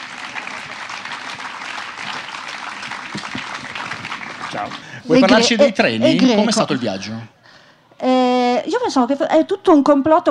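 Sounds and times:
enthusiastic applause: 0.0s - 5.4s
speech: 4.5s - 7.4s, 8.8s - 10.2s.

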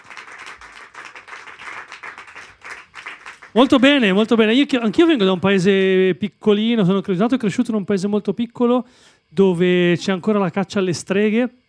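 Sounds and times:
audience applause: 0.0s - 4.0s
speech: 3.6s - 11.6s.

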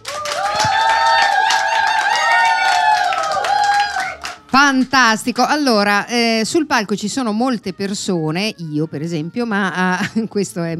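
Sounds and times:
studio audience applause: 0.0s - 4.8s
speech: 4.7s - 10.7s.

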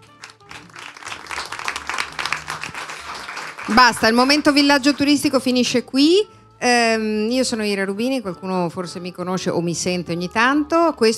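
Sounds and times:
audience applause: 0.0s - 5.2s
speech: 3.7s - 11.1s.

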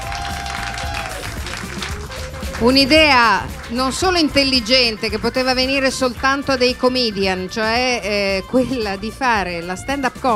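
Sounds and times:
audience applauding at a stand-up comedy benefit evening: 0.0s - 6.5s
speech: 2.6s - 10.3s.

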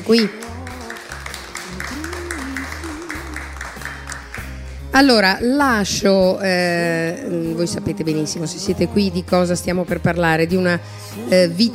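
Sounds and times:
crowd applauding for guests: 0.0s - 4.9s
speech: 0.1s - 0.5s, 5.0s - 11.7s.

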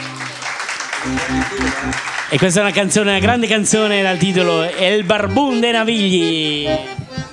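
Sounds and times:
audience applause: 0.0s - 3.2s
speech: 1.0s - 7.2s.

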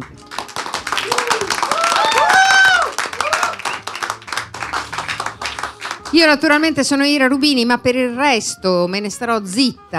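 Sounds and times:
audience clapping: 0.0s - 6.5s
cheers and whoops: 1.0s - 3.8s
speech: 6.2s - 9.9s.

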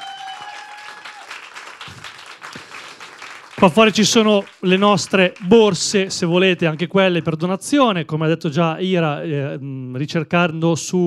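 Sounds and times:
audience applause: 0.0s - 7.3s
speech: 3.6s - 11.0s.

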